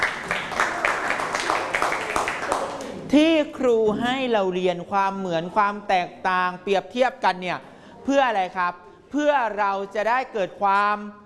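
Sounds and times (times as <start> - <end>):
classroom students clapping for a classmate: 0.0 - 3.0
speech: 3.1 - 11.2.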